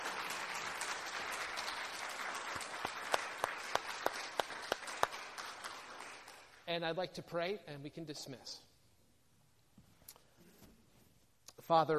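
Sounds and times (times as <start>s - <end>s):
audience applause: 0.0s - 6.6s
speech: 6.7s - 8.7s, 11.7s - 11.9s.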